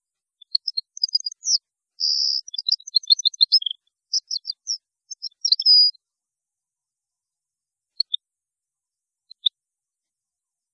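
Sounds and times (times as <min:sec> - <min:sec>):
European goldfinch tinkling song: 0:00.4 - 0:06.0.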